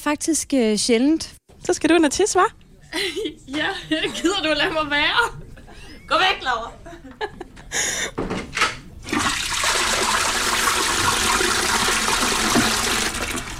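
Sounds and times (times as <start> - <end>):
speech: 0.0 - 5.4, 6.1 - 8.5
laughter: 2.9 - 8.1
toilet flush using the big flush button: 9.0 - 13.5.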